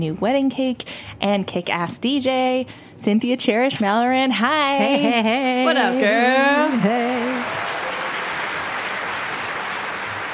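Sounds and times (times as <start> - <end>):
speech: 0.0 - 7.2
crowd applause: 5.7 - 10.3.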